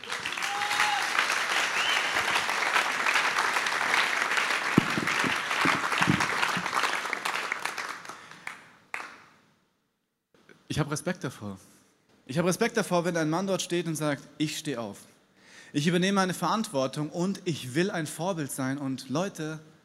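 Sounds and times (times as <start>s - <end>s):
whoops: 0.0s - 2.5s
audience applause: 0.0s - 9.2s
speech: 10.8s - 15.1s, 15.7s - 19.7s.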